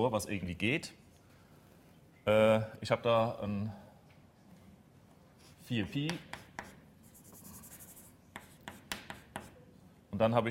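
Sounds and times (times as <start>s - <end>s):
speech: 0.0s - 1.0s, 2.3s - 3.8s, 5.7s - 6.4s, 10.2s - 10.4s
handwriting an integral: 6.3s - 9.5s.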